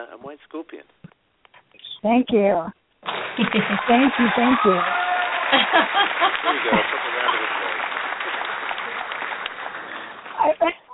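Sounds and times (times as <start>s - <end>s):
speech: 0.0s - 1.0s, 1.7s - 7.5s, 10.4s - 10.9s
crowd clapping and cheering: 3.0s - 10.6s
laughter: 3.4s - 10.9s.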